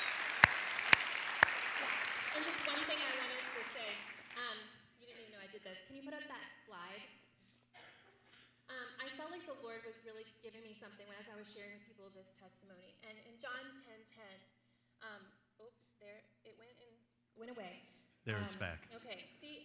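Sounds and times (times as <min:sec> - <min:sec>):
audience clapping: 0:00.0 - 0:04.5
speech: 0:05.6 - 0:07.2, 0:09.2 - 0:16.6, 0:17.4 - 0:19.6.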